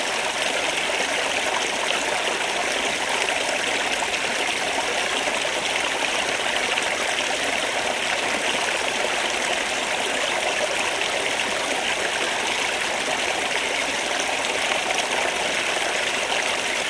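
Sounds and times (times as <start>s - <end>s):
stream flowing on Dartmoor: 0.0s - 16.8s.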